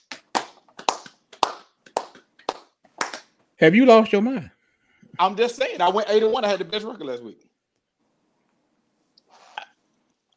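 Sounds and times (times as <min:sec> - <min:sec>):
people clapping: 0:00.0 - 0:03.5
speech: 0:03.6 - 0:04.6, 0:05.2 - 0:07.5.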